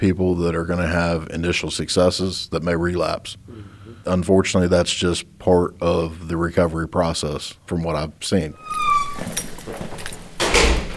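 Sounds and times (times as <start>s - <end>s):
speech: 0.0s - 9.4s
heavy metal door at RSW rattling and clunking: 8.6s - 10.9s.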